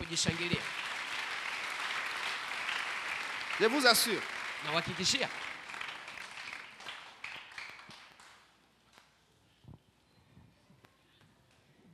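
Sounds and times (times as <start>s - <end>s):
church congregation applauding: 0.0s - 9.0s
speech: 0.1s - 0.8s, 3.6s - 5.5s.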